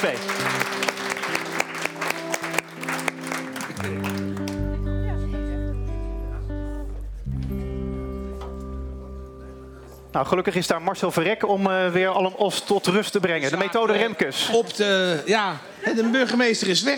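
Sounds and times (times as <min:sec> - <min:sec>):
speech: 0:00.0 - 0:00.8, 0:10.1 - 0:16.9
audience applause: 0:00.0 - 0:05.4
sustained musical chords: 0:00.2 - 0:11.4.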